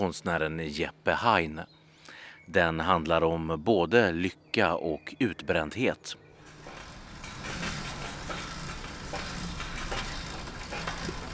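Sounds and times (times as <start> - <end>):
speech: 0.0 - 1.8, 2.5 - 6.2
bicycle being pedaled: 6.4 - 11.3.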